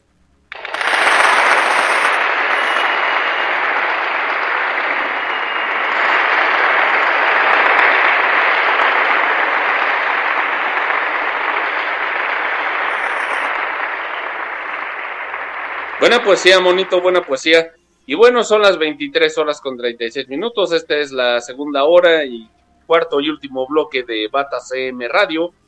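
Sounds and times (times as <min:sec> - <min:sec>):
crowd clapping: 0:00.5 - 0:17.6
speech: 0:16.0 - 0:25.6.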